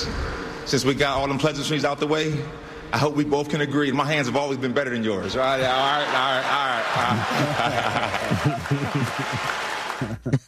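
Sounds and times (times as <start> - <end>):
speech: 0.7 - 10.1
laughter: 5.6 - 10.4
hand clapping: 7.2 - 10.4.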